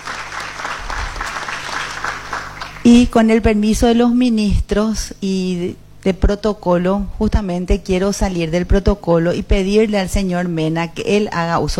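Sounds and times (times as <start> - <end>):
audience applause: 0.0 - 2.9
speech: 2.8 - 11.7.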